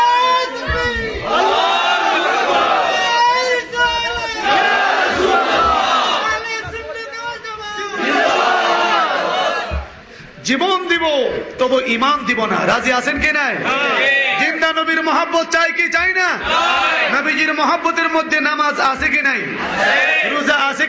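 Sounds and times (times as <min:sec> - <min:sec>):
large crowd at a religious gathering chanting a religious slogan: 0:00.0 - 0:06.4, 0:08.0 - 0:10.0, 0:13.6 - 0:14.4, 0:16.4 - 0:17.1, 0:19.6 - 0:20.4
speech: 0:10.5 - 0:14.2, 0:14.8 - 0:20.8.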